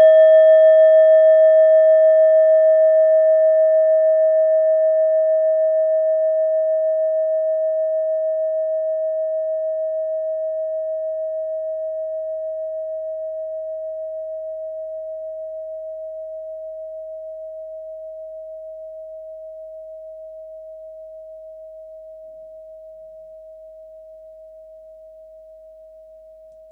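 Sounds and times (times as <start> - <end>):
set of singing bowls: 0.0 - 18.8.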